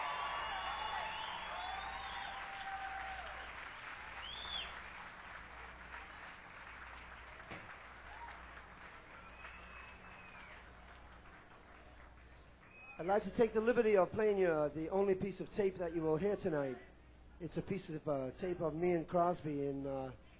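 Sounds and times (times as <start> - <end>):
shrill whistles: 0.0 - 3.3, 4.2 - 4.8, 9.2 - 10.7, 12.2 - 13.1
people whooping: 0.0 - 4.9, 8.0 - 11.0
audience applause: 0.0 - 13.0
speech: 13.0 - 20.3.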